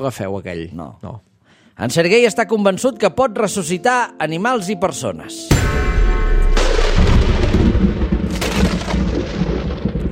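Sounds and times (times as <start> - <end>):
speech: 0.0 - 6.0
rumbling thunderclap: 5.5 - 10.1
sharp bang: 5.5 - 10.1.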